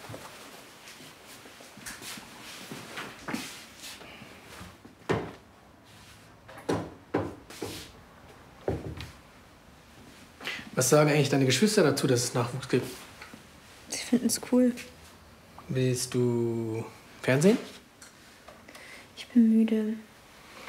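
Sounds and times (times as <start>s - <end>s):
wooden clunks and knocks of things put away in a cupboard: 5.0s - 5.4s, 6.5s - 7.7s, 8.6s - 9.2s
speech: 10.8s - 13.0s, 14.1s - 15.0s, 15.7s - 17.7s, 19.4s - 20.1s.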